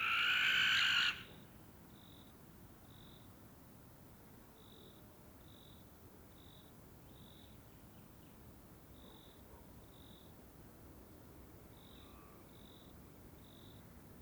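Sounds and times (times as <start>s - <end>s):
common barn owl pair screeching in courtship flight: 0.0s - 1.2s.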